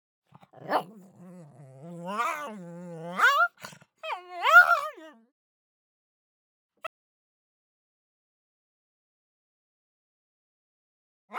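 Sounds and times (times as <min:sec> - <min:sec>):
pug whining and yelping: 0:00.6 - 0:04.9.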